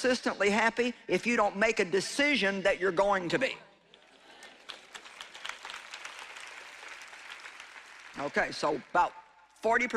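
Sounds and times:
speech: 0.0 - 3.7, 8.2 - 9.9
audience clapping: 3.9 - 9.4.

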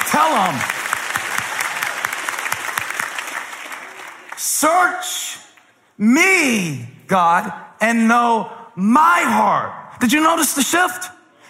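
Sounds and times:
audience clapping: 0.0 - 5.7
speech: 0.2 - 0.8, 4.6 - 11.2.

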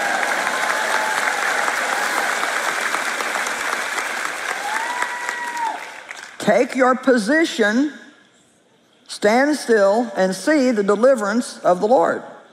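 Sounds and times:
crowd cheering and whooping: 0.0 - 3.6, 4.2 - 6.1
crowd clapping: 0.0 - 6.4
speech: 6.4 - 8.0, 9.2 - 12.3.

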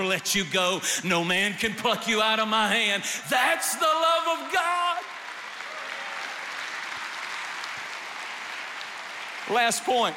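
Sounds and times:
speech: 0.0 - 4.7, 9.5 - 10.1
audience applause: 4.2 - 10.1.

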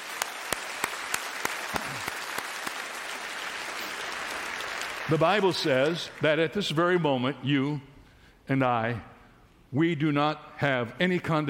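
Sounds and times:
audience clapping hands in rhythm: 0.0 - 6.2
scattered applause: 0.0 - 6.3
speech: 5.1 - 7.9, 8.5 - 9.1, 9.7 - 11.4.

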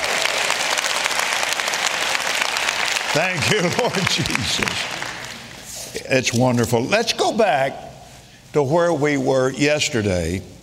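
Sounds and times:
audience applause welcoming Bible college students to class: 0.0 - 5.6
speech: 3.1 - 5.0, 6.0 - 7.9, 8.5 - 10.6.

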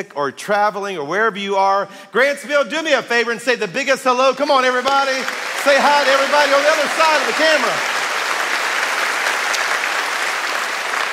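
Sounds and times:
speech: 0.0 - 8.0
crowd clapping: 4.7 - 11.1.

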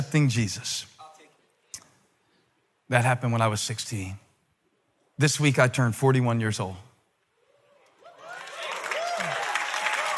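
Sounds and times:
speech: 0.0 - 0.9, 2.9 - 4.2, 5.2 - 6.9
crowd whooping: 7.4 - 10.1
audience applause: 8.0 - 10.1.

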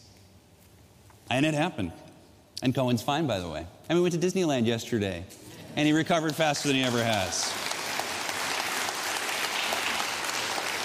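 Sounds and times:
speech: 1.3 - 2.0, 2.6 - 7.6
audience applauding: 6.2 - 10.8.

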